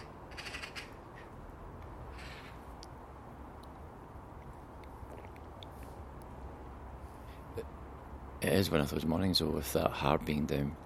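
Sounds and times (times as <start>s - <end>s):
crows cawing in the morning: 0.0s - 1.4s, 2.1s - 2.6s
hiss: 0.0s - 10.8s
speech: 8.4s - 10.8s.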